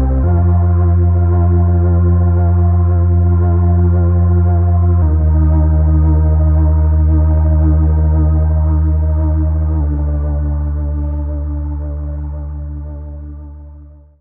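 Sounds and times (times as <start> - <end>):
slow ensemble music: 0.0 - 14.0.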